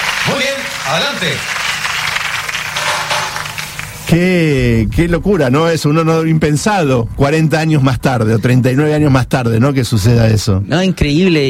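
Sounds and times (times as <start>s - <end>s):
audience applause: 0.0s - 4.0s
speech: 0.3s - 1.6s, 4.1s - 11.4s.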